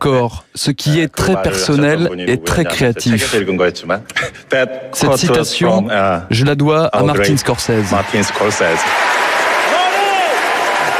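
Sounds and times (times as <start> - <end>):
speech: 0.0 - 9.4
standing ovation for Martin Scorsese at the Oscar ceremony: 7.8 - 10.9.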